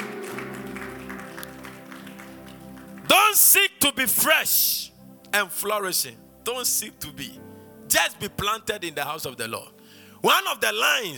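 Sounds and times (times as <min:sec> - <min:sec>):
audience clapping: 0:00.0 - 0:03.5
speech: 0:03.4 - 0:11.1.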